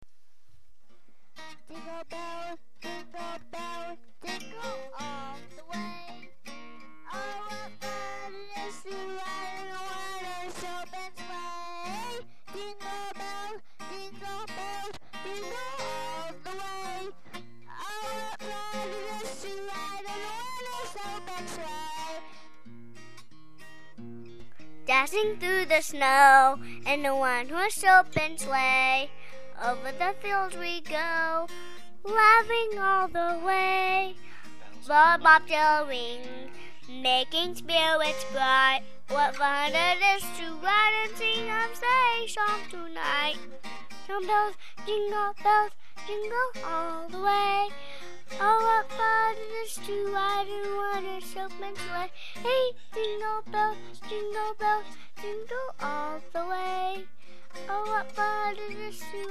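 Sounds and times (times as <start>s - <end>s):
Christmas song: 1.4s - 23.8s, 24.7s - 59.3s.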